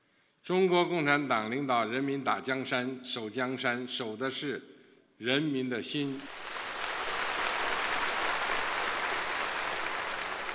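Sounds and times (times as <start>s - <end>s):
speech: 0.5s - 6.5s
large audience applause: 6.2s - 10.5s.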